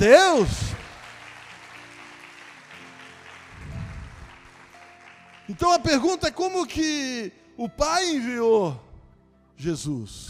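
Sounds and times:
speech: 0.0s - 0.7s, 5.5s - 8.8s, 9.6s - 10.2s
audience applauding: 0.0s - 6.6s.

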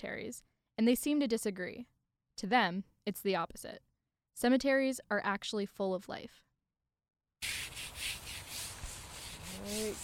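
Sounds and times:
speech: 0.0s - 6.5s, 9.6s - 10.0s
scrubbing a tombstone clean: 7.4s - 10.0s.

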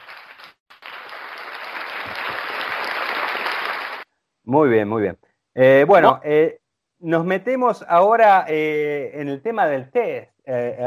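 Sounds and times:
applause: 0.0s - 4.1s
speech: 4.5s - 10.8s.

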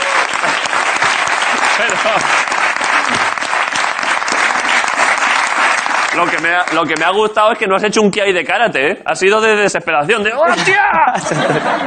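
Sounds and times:
audience applause: 0.0s - 7.4s
speech: 1.8s - 2.5s, 6.2s - 11.8s
laughter: 10.4s - 11.8s.

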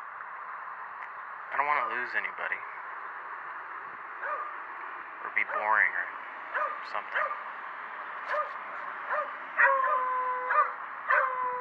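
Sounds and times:
speech: 1.5s - 2.8s, 5.4s - 6.2s, 6.8s - 7.5s
dogs yelping: 4.2s - 4.6s, 5.4s - 5.9s, 6.5s - 7.5s, 8.2s - 11.5s.

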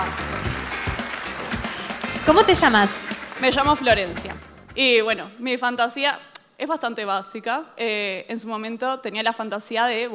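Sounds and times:
audience applause: 0.0s - 4.4s
speech: 2.3s - 10.1s.

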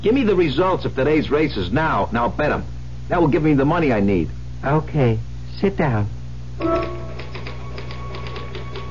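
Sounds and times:
speech: 0.0s - 7.0s
steady low electrical hum: 0.0s - 8.8s
typewriter typing: 6.6s - 8.8s.

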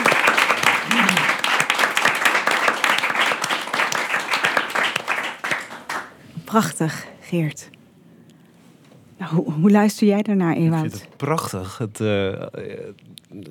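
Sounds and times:
applause: 0.0s - 6.2s
speech: 6.5s - 7.8s, 9.2s - 13.5s.

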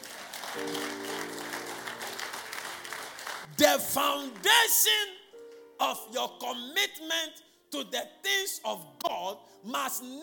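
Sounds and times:
audience clapping: 0.0s - 5.0s
speech: 3.7s - 5.2s, 5.8s - 10.2s.

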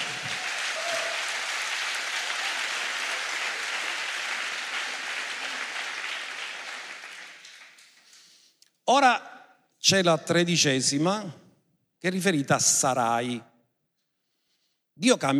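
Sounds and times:
applause: 0.0s - 8.5s
speech: 8.9s - 11.4s, 12.0s - 13.5s, 15.0s - 15.3s.

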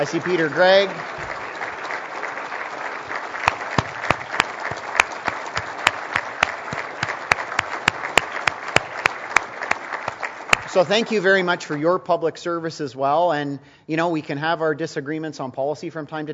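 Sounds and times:
speech: 0.0s - 1.4s, 10.8s - 16.3s
audience applause: 0.0s - 11.3s.

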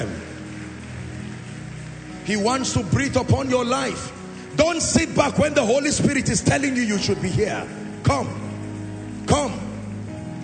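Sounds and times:
audience hand clapping: 0.0s - 6.8s
speech: 2.3s - 8.4s.

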